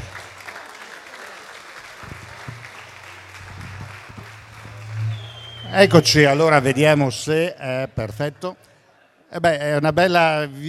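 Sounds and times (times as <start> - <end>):
audience applause: 0.0 - 7.0
speech: 5.7 - 8.7, 9.3 - 10.6.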